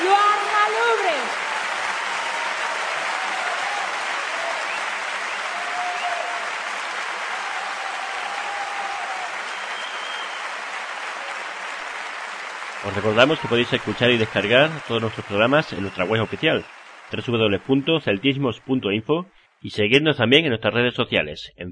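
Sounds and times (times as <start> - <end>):
audience applause: 0.0 - 19.0
speech: 12.8 - 21.7.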